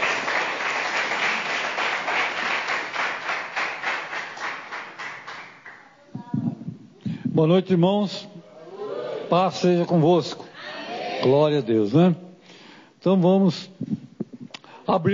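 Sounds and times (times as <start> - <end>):
audience applauding Jesus: 0.0 - 5.8
speech: 7.4 - 8.3, 9.3 - 10.4, 11.2 - 12.2, 13.0 - 13.9, 14.9 - 15.1.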